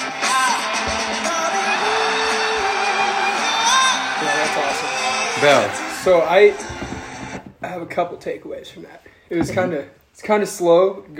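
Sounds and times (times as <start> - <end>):
crowd cheering: 0.0 - 7.4
speech: 5.4 - 6.8, 7.7 - 11.1.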